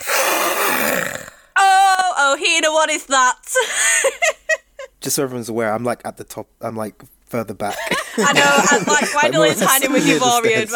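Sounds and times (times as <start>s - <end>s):
roaring growl of a creature: 0.0s - 1.4s
speech: 2.3s - 4.4s, 5.0s - 10.7s
laughter: 7.7s - 10.7s.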